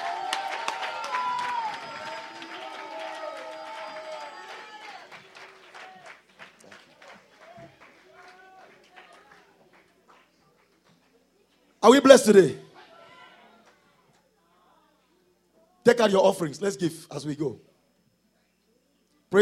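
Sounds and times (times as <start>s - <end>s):
audience shouting and cheering: 0.0s - 6.2s
audience clapping: 0.0s - 11.2s
speech: 11.8s - 12.6s, 16.1s - 17.7s.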